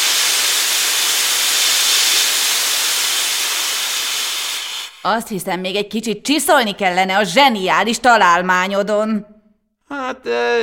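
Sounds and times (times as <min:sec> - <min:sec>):
steam engine hissing: 0:00.0 - 0:05.1
speech: 0:05.0 - 0:10.6.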